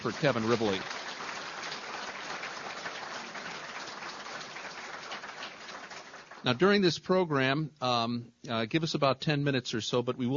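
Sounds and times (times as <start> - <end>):
speech: 0.0 - 1.0, 6.4 - 10.3
audience applause: 0.0 - 6.7.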